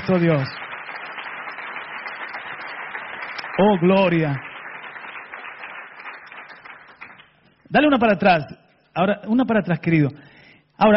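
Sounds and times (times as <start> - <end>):
audience applause: 0.0 - 7.3
speech: 0.1 - 0.6, 3.6 - 4.5, 7.7 - 10.9.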